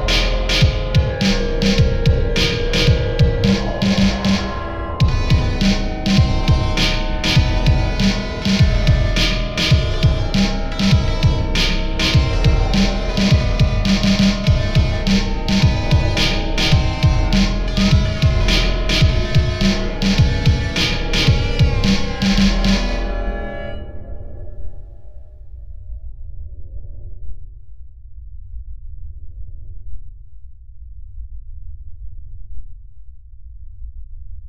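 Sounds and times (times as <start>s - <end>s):
funk music: 0.0s - 23.9s.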